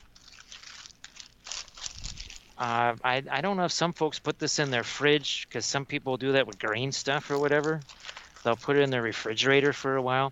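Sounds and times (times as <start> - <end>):
plastic bag crinkling: 0.0 - 2.9, 4.5 - 5.1, 6.4 - 9.9
speech: 2.6 - 10.2.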